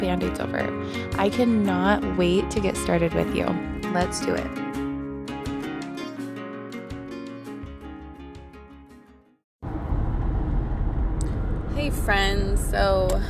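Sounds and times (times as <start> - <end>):
speech: 0.1 - 4.6
interior road noise of a car driving: 9.6 - 13.2.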